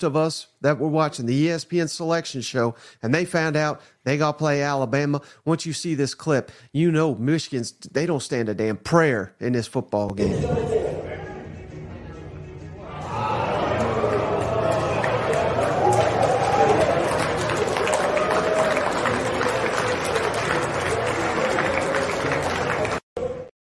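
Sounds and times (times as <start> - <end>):
speech: 0.0 - 11.0
team clapping at a banquet: 13.0 - 23.0.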